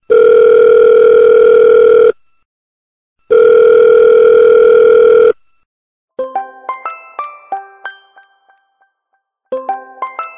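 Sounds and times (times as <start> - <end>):
telephone call: 0.1 - 2.2, 3.3 - 5.4.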